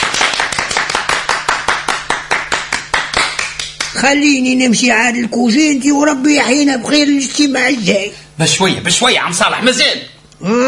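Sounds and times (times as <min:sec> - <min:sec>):
rhythmic hand clapping at a meeting: 0:00.0 - 0:04.1
speech: 0:03.9 - 0:10.6.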